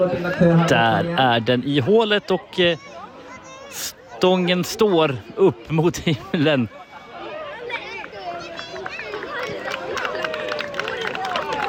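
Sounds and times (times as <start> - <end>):
speech: 0.0 - 3.0, 3.7 - 6.8
light applause: 7.4 - 11.6.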